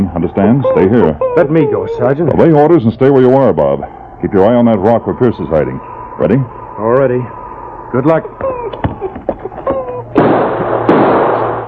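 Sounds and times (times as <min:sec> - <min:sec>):
speech: 0:00.0 - 0:08.8
gunshots in a radio drama shootout among rocks: 0:10.2 - 0:11.6.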